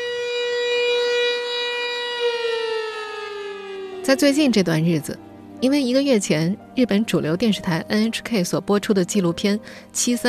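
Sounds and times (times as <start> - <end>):
air-raid siren: 0.0 - 6.6
speech: 4.1 - 10.2.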